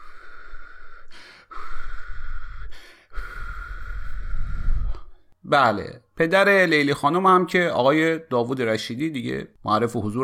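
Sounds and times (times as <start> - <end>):
deep breathing: 0.0 - 5.4
speech: 5.5 - 10.2.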